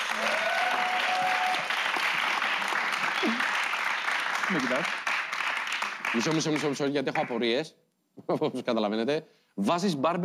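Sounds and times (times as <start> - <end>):
audience applause: 0.0 - 7.4
speech: 4.5 - 5.0, 6.1 - 10.2.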